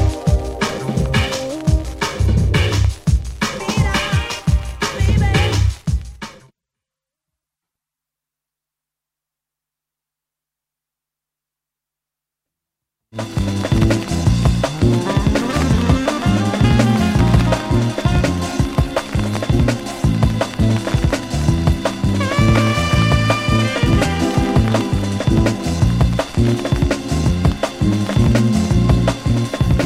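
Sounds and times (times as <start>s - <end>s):
drum and bass music: 0.0s - 6.5s, 13.2s - 29.8s.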